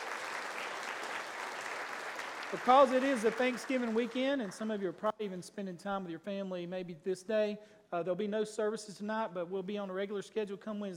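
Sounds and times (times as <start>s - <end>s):
audience hand clapping applause: 0.0s - 4.7s
speech: 2.5s - 10.9s.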